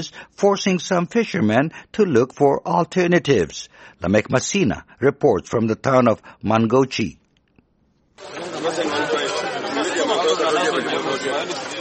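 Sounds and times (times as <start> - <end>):
speech: 0.0 - 7.2, 8.2 - 8.8
crowd of fish traders chattering on beach: 8.2 - 11.7.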